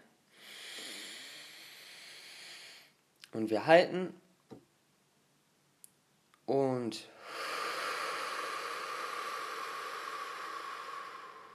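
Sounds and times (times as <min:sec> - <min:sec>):
deep inhale through the nose: 0:00.3 - 0:03.0, 0:07.2 - 0:11.5
speech: 0:03.3 - 0:04.2, 0:06.5 - 0:07.5.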